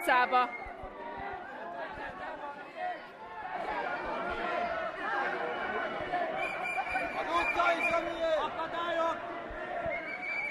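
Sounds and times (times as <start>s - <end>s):
speech: 0.0s - 0.6s
street crowd of protesters moving: 0.0s - 10.5s.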